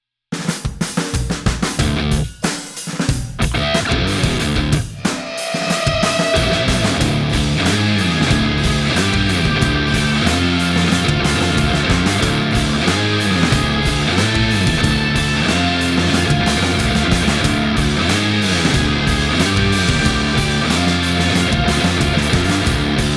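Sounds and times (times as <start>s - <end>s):
heavy band jam: 0.4s - 23.1s.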